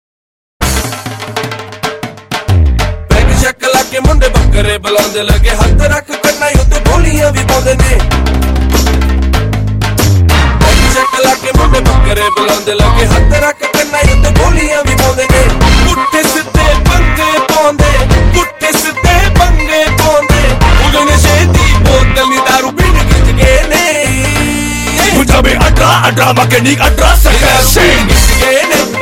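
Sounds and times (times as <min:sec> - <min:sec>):
Bhangra music: 0:00.6 - 0:29.0.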